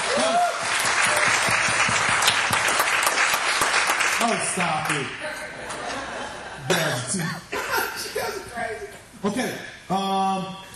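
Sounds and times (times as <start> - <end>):
audience clapping and applause: 0.0 - 5.2
speech: 4.3 - 5.6, 7.1 - 10.6
laughter: 5.5 - 8.6.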